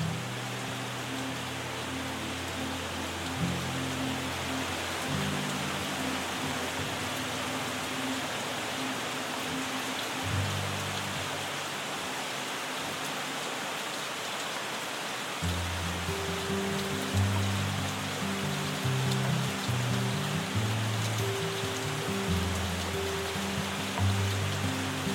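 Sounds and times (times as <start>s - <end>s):
soft low melodic notes: 0.0s - 11.6s, 15.4s - 25.1s
gentle rain: 0.0s - 25.1s.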